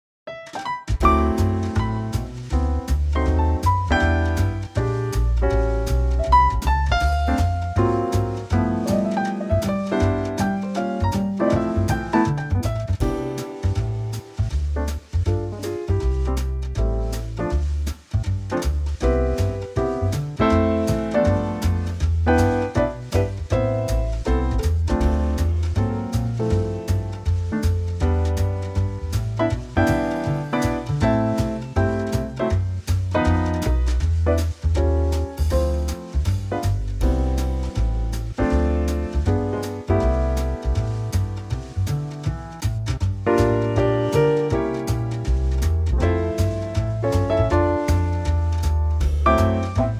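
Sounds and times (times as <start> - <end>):
trio backing track in C for male vocals: 0.3 - 49.9.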